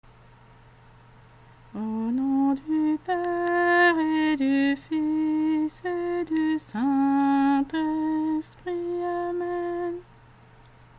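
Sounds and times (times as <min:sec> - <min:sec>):
sung sign of the cross prayer: 0:01.8 - 0:10.1.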